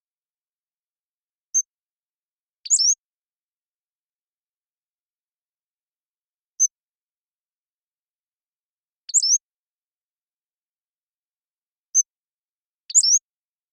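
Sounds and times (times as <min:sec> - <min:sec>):
Pacific-slope flycatcher ticks and squeaks: 0:02.7 - 0:03.0, 0:09.1 - 0:09.4, 0:12.9 - 0:13.2.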